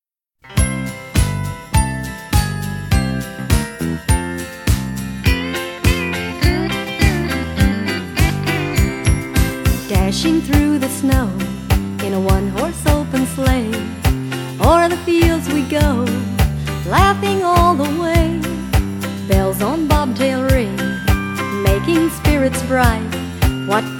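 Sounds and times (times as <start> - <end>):
Christmas song: 0.4 - 23.9.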